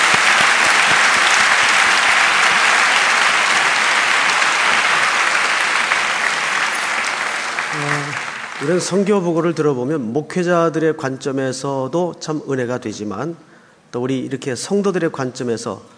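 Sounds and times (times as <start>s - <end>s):
audience applauding: 0.0s - 9.2s
speech: 8.6s - 15.9s.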